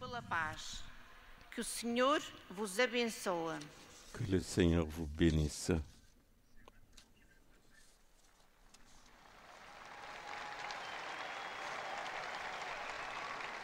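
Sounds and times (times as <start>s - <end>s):
speech: 0.2s - 0.9s, 1.6s - 5.9s
crowd of pilgrims applauding: 9.1s - 13.6s
faint cheers: 9.2s - 13.6s.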